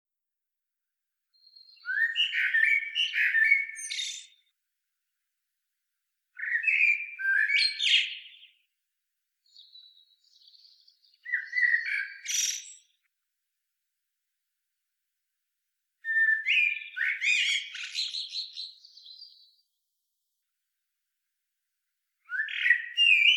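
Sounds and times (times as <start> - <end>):
common blackbird Turdus merula song: 1.3 - 4.6, 6.3 - 8.8, 9.4 - 13.1, 16.0 - 19.8, 22.2 - 23.3.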